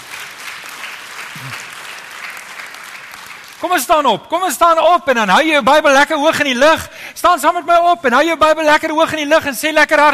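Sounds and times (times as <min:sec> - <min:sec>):
crowd clapping: 0:00.0 - 0:04.0
speech: 0:03.6 - 0:10.1.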